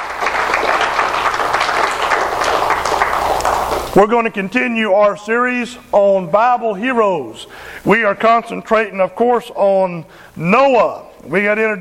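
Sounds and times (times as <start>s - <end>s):
audience applause: 0.0s - 4.0s
speech: 4.0s - 11.7s.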